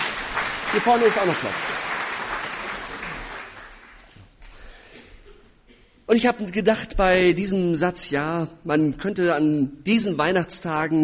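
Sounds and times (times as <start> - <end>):
audience applause: 0.0 - 4.2
speech: 0.7 - 1.9, 6.1 - 11.0.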